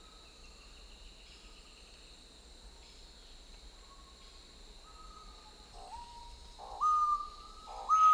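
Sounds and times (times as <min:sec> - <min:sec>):
screaming piha whistled call in the Amazon in Peru: 0:06.0 - 0:08.1.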